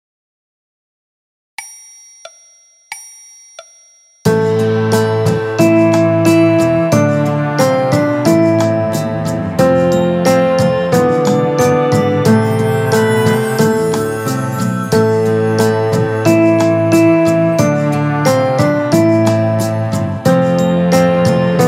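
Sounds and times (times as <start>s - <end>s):
piano: 4.3s - 21.6s
orchestra playing: 4.4s - 21.6s.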